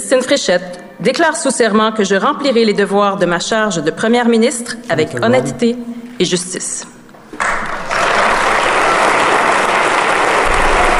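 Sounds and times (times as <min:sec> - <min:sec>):
speech: 0:00.1 - 0:07.4
audience applauding: 0:07.3 - 0:10.9.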